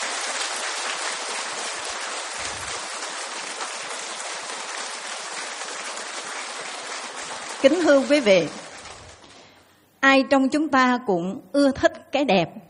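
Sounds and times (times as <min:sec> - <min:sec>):
long loud applause from a large crowd: 0:00.0 - 0:09.4
speech: 0:07.6 - 0:08.6, 0:10.2 - 0:12.6.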